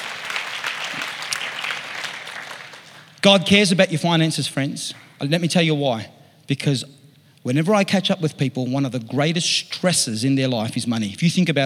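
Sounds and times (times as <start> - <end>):
audience applause: 0.0 - 3.2
speech: 3.2 - 11.6.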